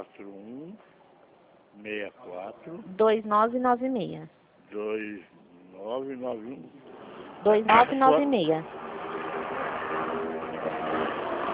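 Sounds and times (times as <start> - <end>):
speech: 1.8 - 8.8
motorcycle passing by outside: 5.8 - 11.5.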